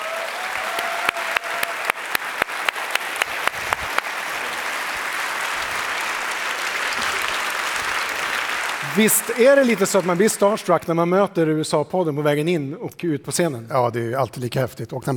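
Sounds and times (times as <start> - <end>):
audience applause: 0.0 - 10.8
speech: 9.0 - 15.1.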